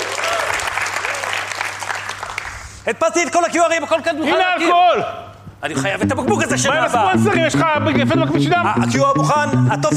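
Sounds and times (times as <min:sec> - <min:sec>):
live audience clapping on cue at an event: 0:00.0 - 0:02.8
speech: 0:02.9 - 0:09.9.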